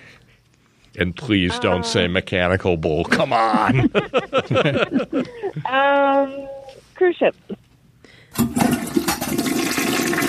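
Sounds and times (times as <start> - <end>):
speech: 0.9 - 7.6
laughter: 3.0 - 5.8
toilet flush sound effect: 8.3 - 10.2.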